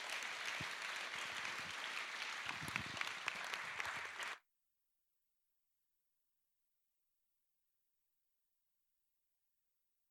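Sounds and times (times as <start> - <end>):
crowd applause: 0.0 - 4.4.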